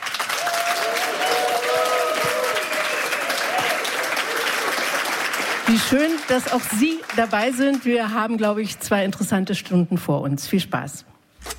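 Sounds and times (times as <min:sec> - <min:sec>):
large live audience applause: 0:00.0 - 0:08.7
faint cheers: 0:00.3 - 0:04.8
speech: 0:05.8 - 0:11.5.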